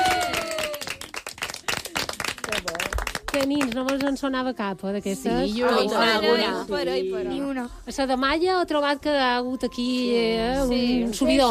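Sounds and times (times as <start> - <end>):
loud applause: 0.0 - 2.8
speech: 3.4 - 11.4.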